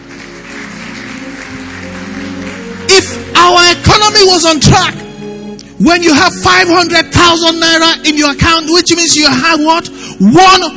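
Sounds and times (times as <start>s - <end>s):
audience clapping: 0.0s - 4.6s
speech: 3.0s - 5.1s, 5.8s - 10.7s.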